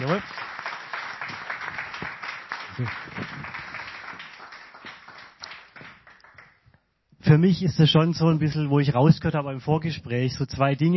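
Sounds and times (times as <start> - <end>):
audience applause: 0.0 - 6.6
speech: 2.8 - 3.2, 7.3 - 10.9.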